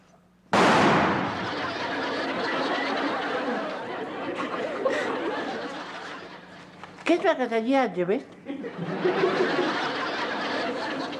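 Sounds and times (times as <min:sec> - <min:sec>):
rifle shot firing loudly: 0:00.5 - 0:01.5
laughter: 0:01.2 - 0:06.8, 0:08.5 - 0:11.1
speech: 0:07.1 - 0:10.0.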